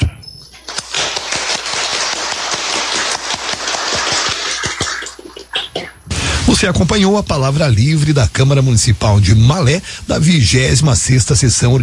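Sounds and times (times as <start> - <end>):
crowd applauding in a council chamber: 0.6 - 5.5
speech: 6.5 - 11.8.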